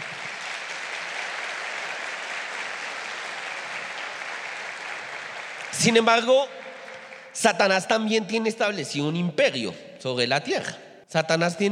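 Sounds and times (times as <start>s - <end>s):
audience applause: 0.0s - 7.5s
speech: 5.8s - 6.6s, 7.4s - 11.7s.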